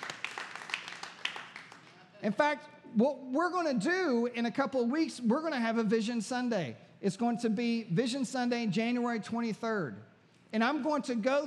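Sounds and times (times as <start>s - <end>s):
audience clapping: 0.0s - 2.0s
speech: 2.2s - 11.4s.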